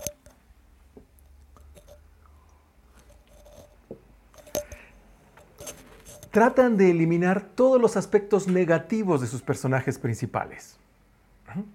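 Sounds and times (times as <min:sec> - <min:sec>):
person sipping water: 0:01.2 - 0:06.3
speech: 0:06.3 - 0:10.8, 0:11.5 - 0:11.7.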